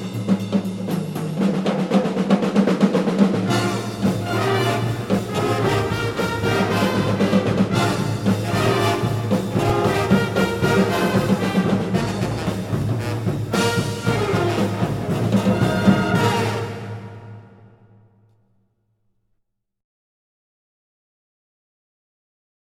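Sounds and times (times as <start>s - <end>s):
pep band playing funk: 0.0s - 17.2s.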